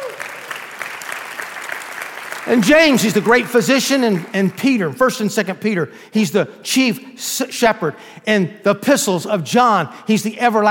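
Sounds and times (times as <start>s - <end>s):
audience applauding: 0.0s - 4.8s
speech: 2.4s - 10.6s.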